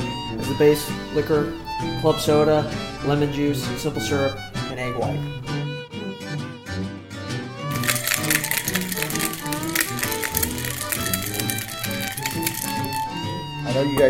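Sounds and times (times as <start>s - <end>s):
music: 0.0s - 14.0s
speech: 0.5s - 5.5s, 13.8s - 14.0s
cocktail shaker shaken hard with ice: 7.7s - 13.2s.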